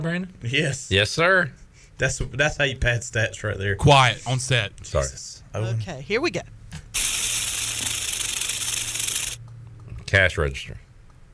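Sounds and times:
speech: 0.0s - 7.1s, 10.1s - 10.8s
rattlesnake rattle: 7.0s - 9.4s.

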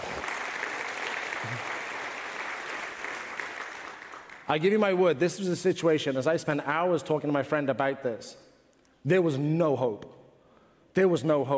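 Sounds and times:
audience applause: 0.0s - 4.5s
speech: 1.4s - 1.7s, 4.5s - 10.1s, 11.0s - 11.5s.

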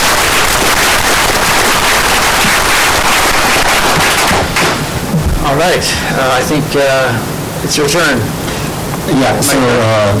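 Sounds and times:
loud sustained crowd applause: 0.0s - 4.8s
speech: 5.6s - 8.4s, 9.1s - 10.1s.

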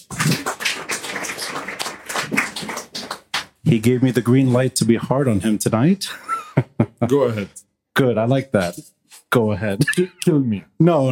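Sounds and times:
audience applause: 0.0s - 3.5s
speech: 3.7s - 6.3s, 7.0s - 11.1s
laughter: 6.1s - 7.4s.

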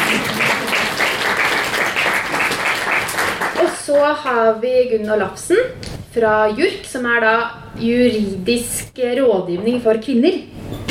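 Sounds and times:
audience applause: 0.0s - 3.7s
speech: 4.0s - 10.8s.

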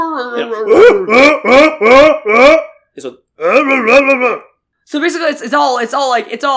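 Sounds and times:
voice imitating Tusken Raider growls: 0.3s - 2.8s, 3.4s - 4.5s
speech: 0.4s - 6.5s.

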